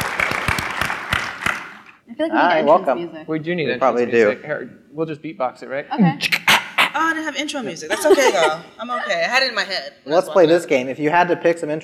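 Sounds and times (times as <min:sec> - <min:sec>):
crowd applauding: 0:00.0 - 0:02.0
speech: 0:02.2 - 0:06.4, 0:07.0 - 0:11.8
laughter: 0:07.9 - 0:08.8.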